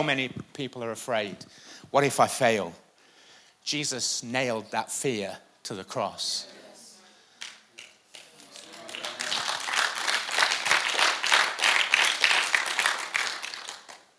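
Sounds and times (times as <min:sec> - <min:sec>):
speech: 0:00.0 - 0:02.8, 0:03.6 - 0:06.6
audience applause: 0:08.2 - 0:14.1.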